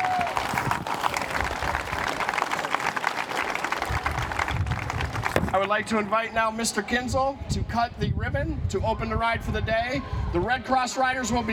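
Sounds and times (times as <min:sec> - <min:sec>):
audience applause: 0:00.0 - 0:05.7
speech: 0:05.6 - 0:11.5.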